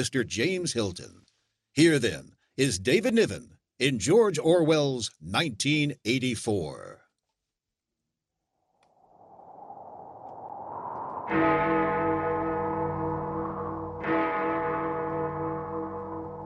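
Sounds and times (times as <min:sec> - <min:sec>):
speech: 0:00.0 - 0:07.0, 0:11.3 - 0:11.8
clock bells striking the hour: 0:11.4 - 0:16.4.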